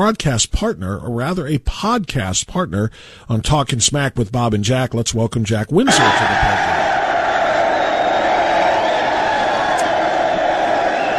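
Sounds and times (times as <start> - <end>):
speech: 0.0 - 6.8
studio audience cheering sound effect with shouts and whoops: 5.9 - 11.1.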